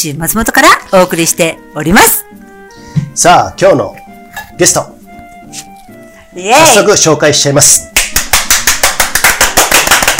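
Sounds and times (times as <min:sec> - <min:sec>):
speech: 0:00.0 - 0:02.4, 0:03.2 - 0:04.0, 0:04.6 - 0:04.9, 0:06.4 - 0:08.0
brisk applause: 0:08.0 - 0:10.1.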